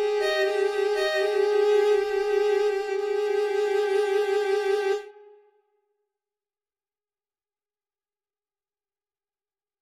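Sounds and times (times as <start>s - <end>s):
fugue: 0.0s - 5.4s.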